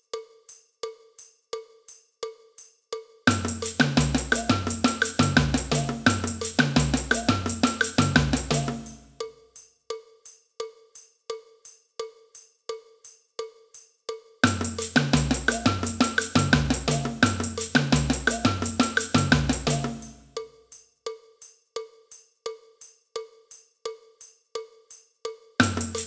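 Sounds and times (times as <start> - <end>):
cowbell: 0.2 - 26.0
samba band: 3.3 - 9.2, 14.4 - 20.3, 25.6 - 26.0.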